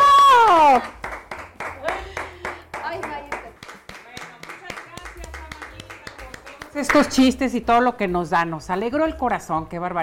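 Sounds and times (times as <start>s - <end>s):
steady rhythmic clapping: 0.5s - 7.8s
speech: 6.8s - 10.0s.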